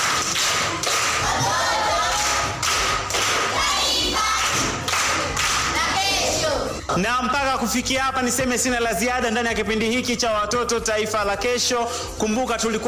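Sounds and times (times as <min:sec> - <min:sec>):
schoolchildren at Nyasura primary school applauding a visiting woman: 0:00.0 - 0:05.8
speech: 0:07.0 - 0:12.8.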